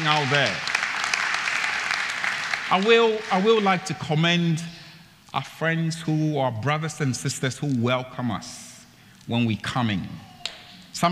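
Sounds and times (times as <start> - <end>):
audience applauding: 0.0 - 3.9
speech: 0.1 - 0.7, 2.7 - 8.7, 9.3 - 10.3.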